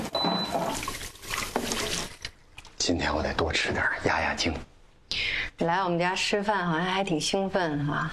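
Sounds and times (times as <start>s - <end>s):
washing hands under running tap water: 0.1s - 2.8s
speech: 2.9s - 4.7s, 5.6s - 8.1s.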